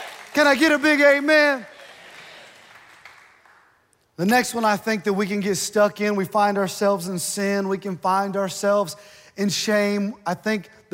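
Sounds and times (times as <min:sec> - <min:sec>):
crowd, audience clapping hands: 0:00.0 - 0:04.0
speech: 0:00.4 - 0:01.7, 0:04.2 - 0:10.9.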